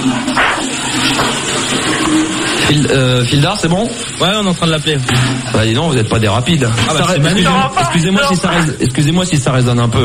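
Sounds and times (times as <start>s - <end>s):
toilet flushing: 0.0s - 10.0s
speech: 2.7s - 10.0s.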